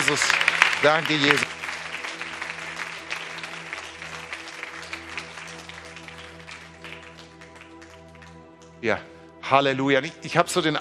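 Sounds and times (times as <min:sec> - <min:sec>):
audience applause: 0:00.0 - 0:08.4
speech: 0:00.1 - 0:01.6, 0:08.8 - 0:10.7.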